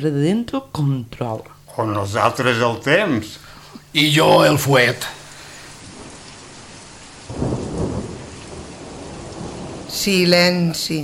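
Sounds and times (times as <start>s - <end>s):
speech: 0.0s - 5.2s, 10.0s - 11.0s
thunder during a rainstorm: 7.3s - 10.0s.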